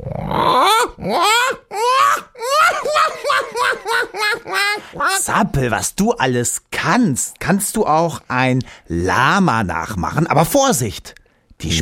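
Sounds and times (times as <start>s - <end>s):
person imitating black-headed gull calls: 0.0s - 2.7s
speech: 0.5s - 1.3s, 5.4s - 11.8s
laughter: 1.1s - 5.4s.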